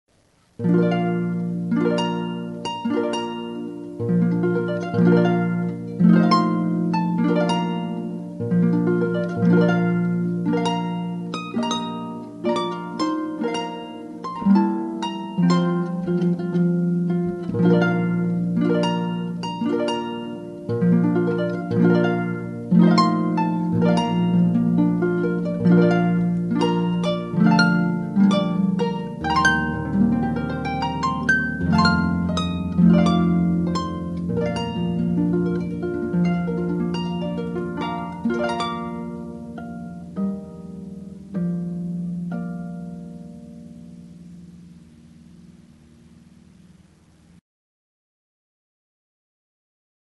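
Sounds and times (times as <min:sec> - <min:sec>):
music piece: 0:00.2 - 0:47.4.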